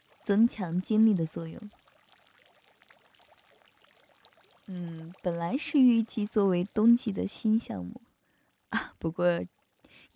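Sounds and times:
bubbling pouring water of a bubble pool: 0.0s - 7.4s
speech: 0.3s - 1.8s, 4.7s - 8.1s, 8.7s - 10.1s.

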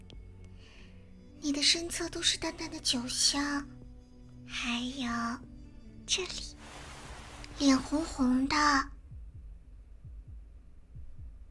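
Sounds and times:
speech: 1.4s - 3.8s, 4.5s - 5.5s, 6.1s - 6.8s, 7.6s - 8.9s
heartbeat sound effect: 8.9s - 11.4s.

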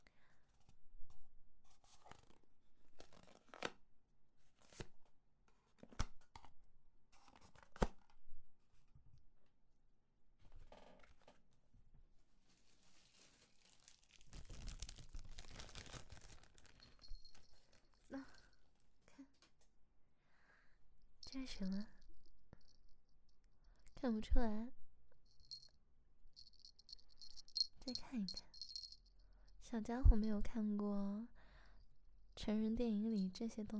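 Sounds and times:
package wrapping crinkling and tearing: 12.5s - 17.0s
speech: 21.4s - 22.0s, 24.0s - 24.8s, 27.9s - 28.5s, 29.7s - 31.4s, 32.4s - 33.7s.

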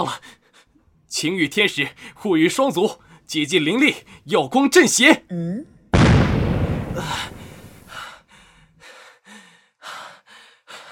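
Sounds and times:
speech: 0.0s - 0.4s, 1.1s - 5.7s, 7.0s - 7.4s
explosion of magical jade boots: 6.0s - 7.9s.

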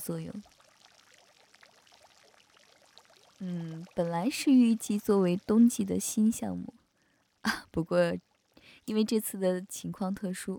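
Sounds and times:
speech: 0.0s - 0.6s, 3.4s - 6.8s, 7.4s - 10.5s
bubbling water in a spa bubble pool: 0.0s - 7.5s, 8.2s - 8.6s.

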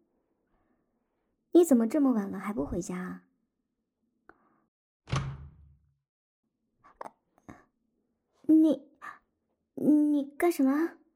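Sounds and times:
speech: 1.6s - 3.3s, 8.6s - 8.9s, 9.8s - 11.0s
door being locked: 5.1s - 5.7s.

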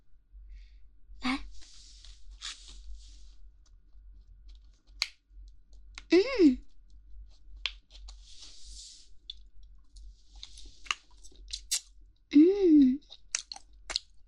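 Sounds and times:
speech: 6.2s - 6.6s
chewing food: 9.3s - 11.9s, 13.0s - 14.2s.

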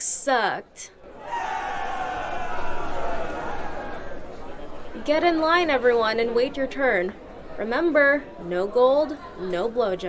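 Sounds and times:
speech: 0.2s - 1.0s, 5.0s - 10.0s
crowd cheering: 1.1s - 5.0s.

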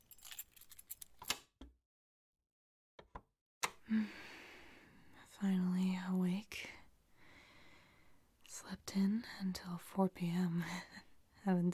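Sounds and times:
metallic jangle and rattle of a cellar door: 0.0s - 1.3s
speech: 5.4s - 6.7s, 9.0s - 11.7s.

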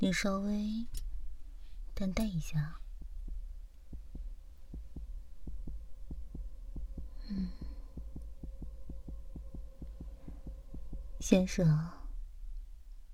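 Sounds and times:
speech: 0.0s - 1.1s, 2.0s - 2.8s, 7.3s - 7.6s, 11.2s - 12.0s
low constant hum: 0.0s - 13.1s
rapid heartbeat through a stethoscope: 2.8s - 12.0s.

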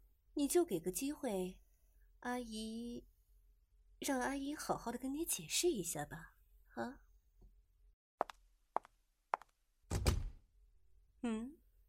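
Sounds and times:
speech: 0.4s - 1.6s, 2.2s - 3.1s, 4.0s - 7.0s, 11.2s - 11.6s
door shutting with a heavy thud: 9.9s - 10.4s
person murmuring: 11.2s - 11.6s.

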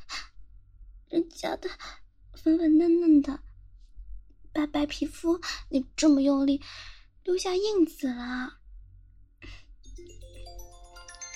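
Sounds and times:
speech: 1.3s - 3.5s, 4.6s - 8.6s
phone ringing with an incoming call: 9.9s - 11.3s.

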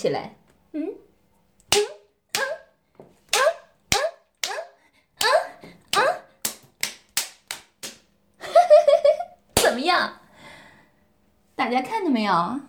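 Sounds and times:
speech: 0.0s - 0.9s, 10.0s - 10.2s, 11.6s - 12.6s
slaps to the face: 1.7s - 2.6s, 3.3s - 4.6s, 5.2s - 8.1s, 9.6s - 9.8s.

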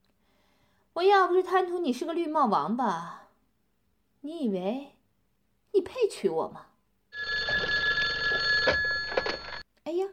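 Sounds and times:
speech: 1.0s - 3.2s, 4.2s - 4.9s, 5.7s - 6.7s
telephone ringing with an incoming call: 7.2s - 9.6s.

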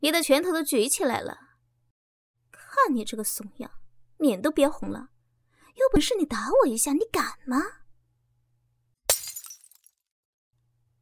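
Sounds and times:
speech: 0.0s - 1.5s, 2.8s - 5.1s, 5.8s - 7.8s
object hurled and smashed onto the floor: 9.1s - 10.1s.

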